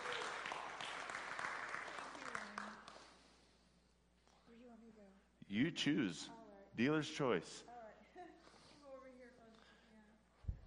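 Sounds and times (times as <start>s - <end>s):
audience applause welcoming a speaker onto a stage: 0.0s - 2.9s
speech: 5.5s - 7.7s.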